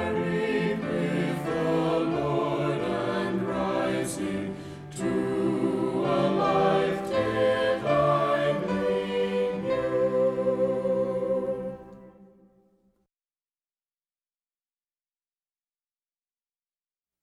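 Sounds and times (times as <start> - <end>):
hymn with voices and instruments: 0.0 - 12.6.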